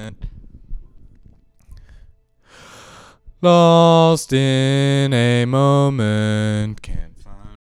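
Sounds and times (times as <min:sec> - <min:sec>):
male ambient lead vocal: 0:03.4 - 0:07.6.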